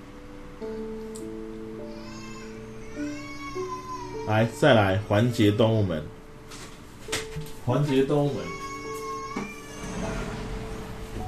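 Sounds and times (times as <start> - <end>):
young child crying: 1.8 - 5.4, 8.0 - 10.2
speech: 4.3 - 6.2, 7.7 - 8.6.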